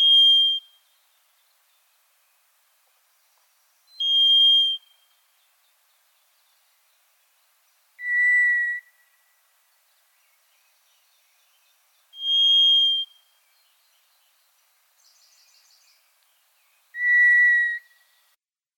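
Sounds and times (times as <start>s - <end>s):
White's thrush calling: 4.0s - 5.0s, 8.0s - 9.0s, 12.2s - 13.2s, 17.0s - 18.0s.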